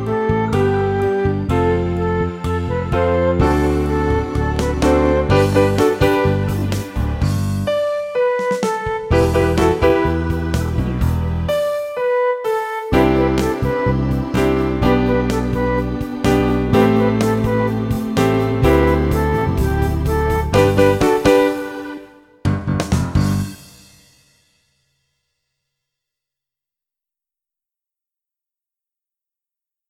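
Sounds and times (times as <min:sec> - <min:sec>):
flute: 0:00.0 - 0:22.4.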